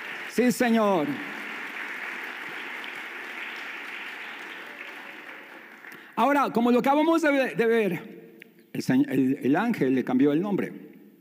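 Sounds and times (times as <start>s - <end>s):
audience ovation applause: 0.0s - 6.2s
speech: 0.4s - 1.3s, 6.2s - 8.2s, 8.8s - 10.8s.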